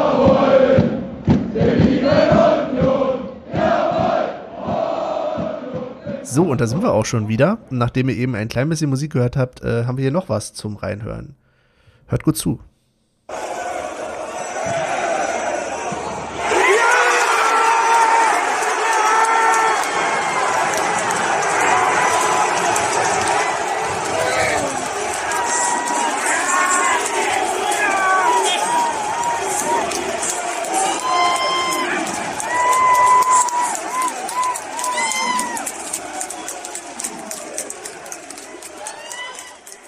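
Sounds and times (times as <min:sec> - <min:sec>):
stadium crowd cheering after winning goal: 0:00.0 - 0:00.9, 0:01.6 - 0:07.3, 0:13.3 - 0:39.8
speech: 0:06.4 - 0:11.4, 0:12.1 - 0:12.7
voices shouting: 0:13.3 - 0:39.8.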